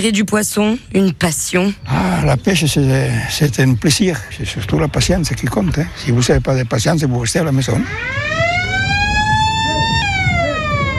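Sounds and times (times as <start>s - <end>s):
speech: 0.0s - 8.4s
alarm signalling end of fishing contest: 7.8s - 10.9s.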